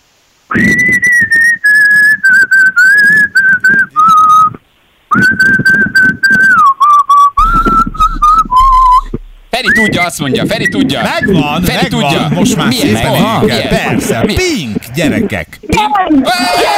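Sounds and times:
person whistling a pop song melody: 0:00.5 - 0:12.2
laughter: 0:09.7 - 0:15.5
speech: 0:09.8 - 0:16.7.

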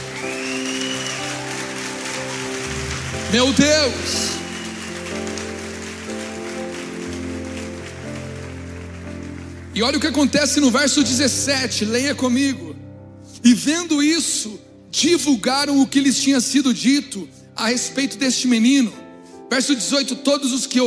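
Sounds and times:
audience applause: 0:00.0 - 0:11.2
speech: 0:03.3 - 0:04.4, 0:09.8 - 0:12.7, 0:13.4 - 0:20.8.

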